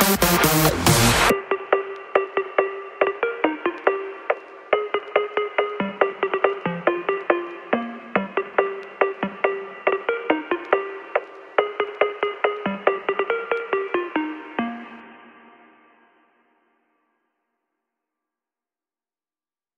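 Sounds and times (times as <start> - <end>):
techno remix of a Christmas song: 0.0 - 15.7.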